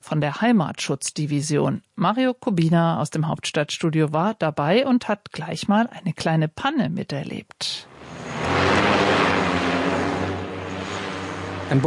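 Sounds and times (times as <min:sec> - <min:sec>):
speech: 0:00.1 - 0:08.6
interceptor drone motors buzzing as it takes off: 0:07.9 - 0:11.8.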